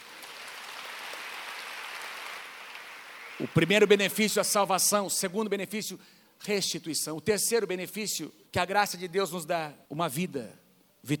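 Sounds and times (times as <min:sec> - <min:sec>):
audience applause: 0:00.0 - 0:03.8
speech: 0:03.4 - 0:11.1.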